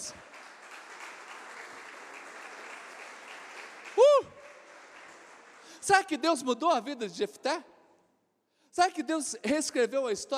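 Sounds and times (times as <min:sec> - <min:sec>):
audience applause: 0:00.0 - 0:06.0
speech: 0:05.8 - 0:07.7, 0:08.8 - 0:10.3.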